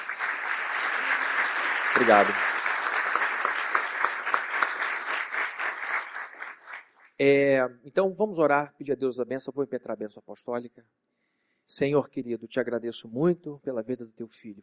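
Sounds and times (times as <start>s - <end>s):
audience applause: 0.0s - 7.0s
speech: 2.0s - 2.5s, 7.2s - 11.0s, 11.7s - 14.6s.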